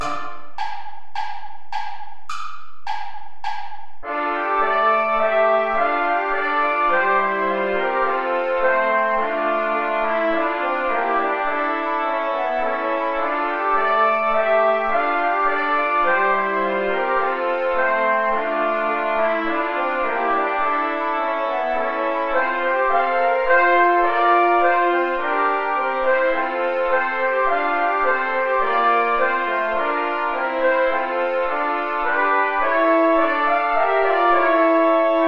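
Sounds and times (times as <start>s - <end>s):
play-along backing music without trombone: 0.0s - 35.2s.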